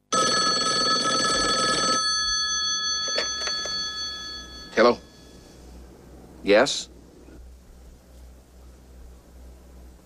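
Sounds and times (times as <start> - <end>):
telephone bell ringing: 0.0 - 5.3
speech: 4.8 - 5.1, 6.4 - 6.9.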